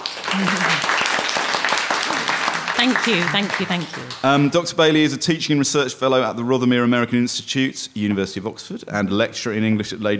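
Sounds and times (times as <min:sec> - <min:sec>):
audience applause: 0:00.0 - 0:04.9
speech: 0:00.4 - 0:00.9, 0:02.8 - 0:10.1.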